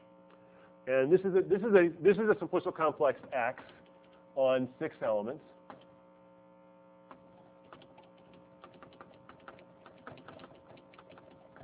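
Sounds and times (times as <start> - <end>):
steady low electrical hum: 0.0 - 11.6
speech: 0.8 - 3.8, 4.4 - 5.5
typing on a computer keyboard into Macaulay math software: 7.6 - 11.6.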